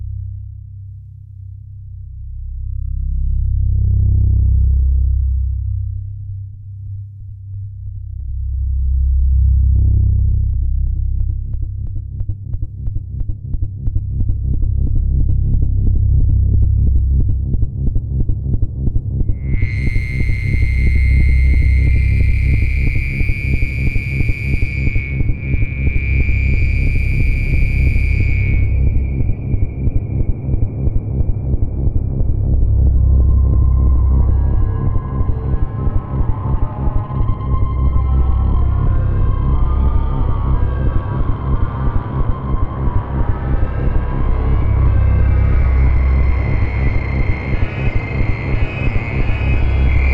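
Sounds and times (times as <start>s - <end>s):
horror music: 1.6s - 50.1s.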